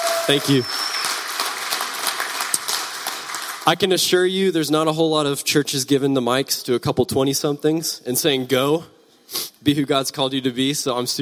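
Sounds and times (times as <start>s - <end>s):
audience applause: 0.0s - 3.9s
speech: 0.3s - 0.8s, 3.7s - 11.2s.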